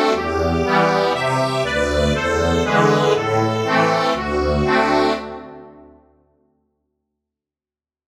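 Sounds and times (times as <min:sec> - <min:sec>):
accordion: 0:00.0 - 0:06.1.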